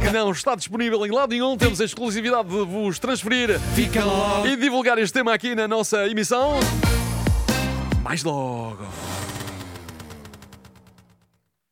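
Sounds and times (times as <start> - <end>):
speech: 0.1 - 7.0, 8.1 - 9.0
Lambretta scooter engine: 8.8 - 11.4.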